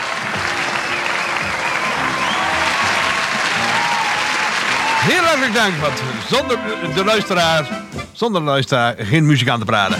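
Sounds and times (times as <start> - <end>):
applause: 0.0 - 6.6
speech: 5.0 - 9.9.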